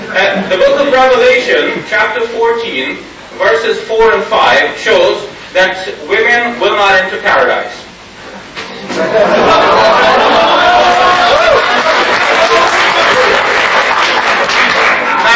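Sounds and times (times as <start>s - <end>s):
speech: 0.2s - 7.8s, 9.0s - 10.4s
audience laughing: 8.8s - 15.3s
audience clapping: 10.4s - 15.3s.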